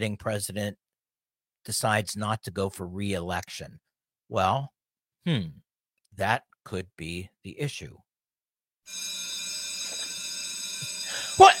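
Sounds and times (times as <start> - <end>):
speech: 0.0 - 0.8, 1.6 - 5.6, 6.2 - 8.1, 8.9 - 9.3, 11.4 - 11.5
bell ringing: 8.9 - 11.5.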